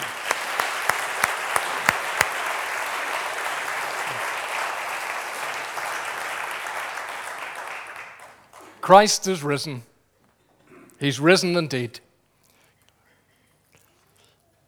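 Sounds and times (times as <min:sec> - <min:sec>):
audience applause: 0:00.0 - 0:09.6
speech: 0:08.8 - 0:09.9, 0:11.0 - 0:12.0.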